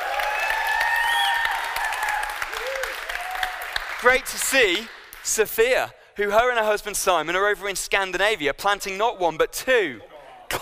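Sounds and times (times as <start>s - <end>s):
faint cheers: 0.0s - 3.8s
crowd applause: 0.0s - 5.2s
speech: 4.0s - 10.5s.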